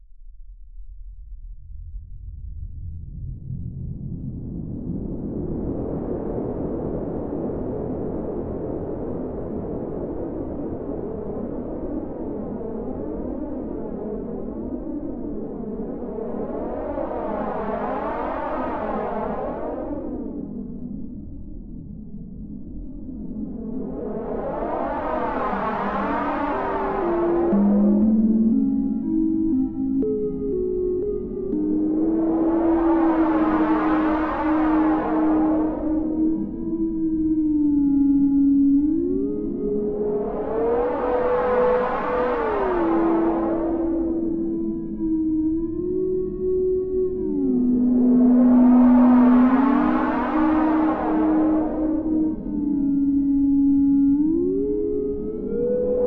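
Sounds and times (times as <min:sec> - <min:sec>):
ambience: 0:01.0 - 0:56.0.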